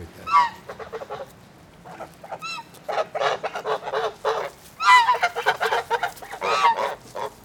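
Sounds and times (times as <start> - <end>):
geese calling in a group: 0.1 - 7.4.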